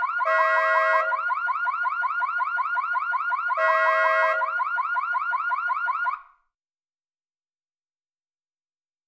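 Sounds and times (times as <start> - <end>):
car alarm: 0.0 - 6.4
car horn: 0.2 - 1.1, 3.6 - 4.4.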